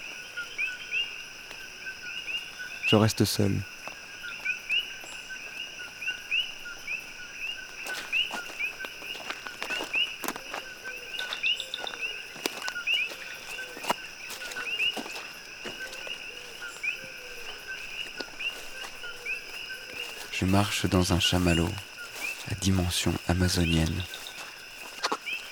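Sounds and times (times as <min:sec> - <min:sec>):
frogs calling in an Amazon rainforest chorus: 0:00.0 - 0:25.4
speech: 0:02.9 - 0:03.7, 0:20.5 - 0:21.9, 0:22.5 - 0:24.2.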